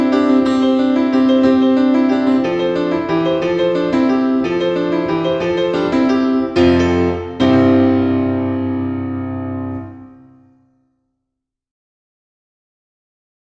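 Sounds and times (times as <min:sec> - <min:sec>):
solo piano: 0:00.0 - 0:10.6.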